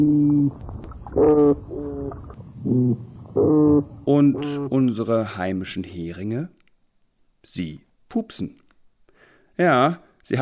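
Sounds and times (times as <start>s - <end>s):
speech: 0.0s - 1.7s, 4.1s - 6.6s, 7.4s - 8.6s, 9.6s - 10.4s
toadfish calls, foghorn-like low buzzy hoots: 0.0s - 4.9s.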